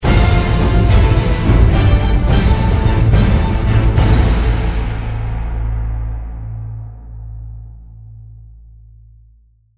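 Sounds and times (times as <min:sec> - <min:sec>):
finale victory music: 0:00.0 - 0:06.3.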